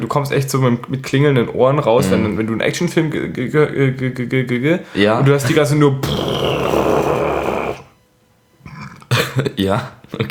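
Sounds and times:
speech: 0.0 - 6.9, 9.4 - 10.2
burp: 6.0 - 8.0, 8.6 - 9.3.

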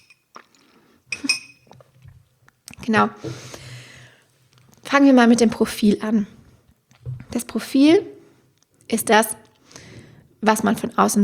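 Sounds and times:
glass clinking while sipping orange juice: 1.1 - 1.8
speech: 2.9 - 3.6, 4.9 - 6.4, 7.4 - 8.1, 8.9 - 9.4, 10.4 - 11.2.

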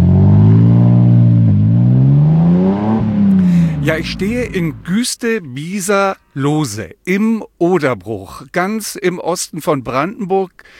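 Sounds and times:
car engine revving: 0.0 - 4.9
speech: 3.9 - 10.7.

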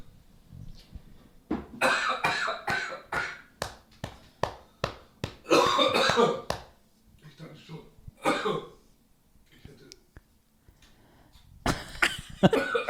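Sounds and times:
person coughing after choking on radish: 1.8 - 3.4, 5.4 - 6.5, 8.2 - 8.8, 12.5 - 12.8.

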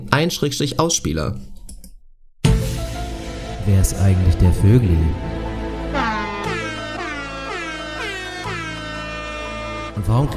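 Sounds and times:
speech: 0.1 - 1.5, 3.6 - 5.4, 10.1 - 10.3
sustained low drone: 5.1 - 10.0
air horn blasts: 5.9 - 10.3.

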